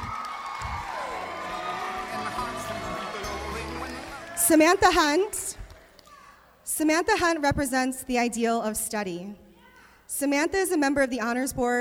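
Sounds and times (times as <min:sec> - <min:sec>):
audience applause and cheering: 0:00.0 - 0:06.2
speech: 0:04.5 - 0:05.4, 0:06.8 - 0:09.4, 0:10.1 - 0:11.8.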